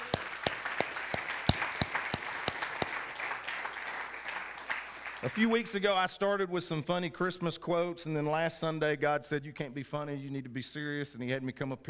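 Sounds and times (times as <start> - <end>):
audience applause: 0.0 - 5.3
sharp steady rhythmic claps: 0.0 - 5.3
speech: 5.2 - 11.8.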